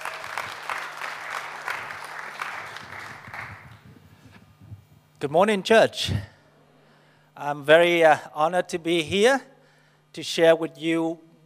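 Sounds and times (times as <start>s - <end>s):
church congregation applauding a guest speaker: 0.0s - 3.9s
low steady hum: 0.0s - 11.4s
speech: 5.2s - 6.3s, 7.4s - 9.5s, 10.1s - 11.2s.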